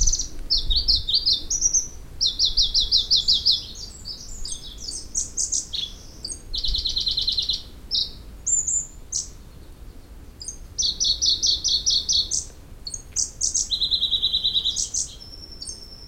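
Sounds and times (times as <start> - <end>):
Pallas's leaf warbler Phylloscopus proregulus: 0.0 - 16.0.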